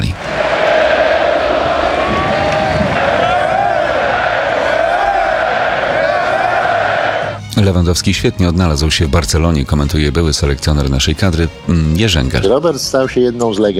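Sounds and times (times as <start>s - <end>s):
stadium crowd ovation: 0.0s - 7.4s
speech: 7.6s - 13.7s.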